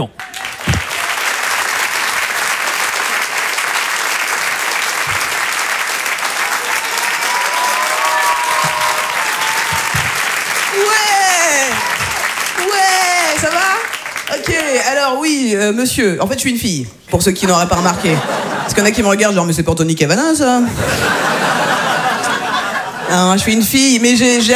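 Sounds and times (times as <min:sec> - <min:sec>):
audience applauding loudly at a French comedy show: 0:00.0 - 0:15.0, 0:20.8 - 0:23.2
speech: 0:14.9 - 0:21.3, 0:23.1 - 0:24.5
laughter: 0:17.4 - 0:19.5, 0:20.6 - 0:24.5.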